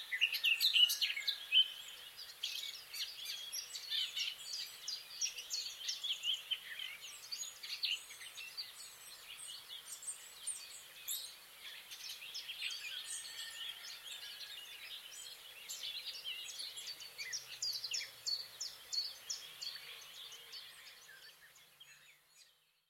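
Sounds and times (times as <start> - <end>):
Eurasian blackcap warbling song: 0.0 - 22.8.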